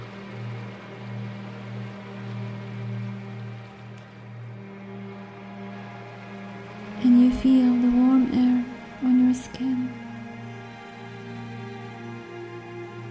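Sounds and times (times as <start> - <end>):
ocean waves: 0.0 - 13.0
steady low humming drone: 0.0 - 13.0
speech: 7.4 - 8.4.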